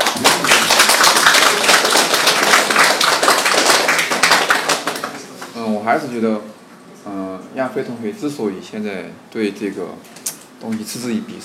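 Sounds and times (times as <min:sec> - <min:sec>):
applause: 0:00.0 - 0:05.6
speech: 0:05.8 - 0:11.4.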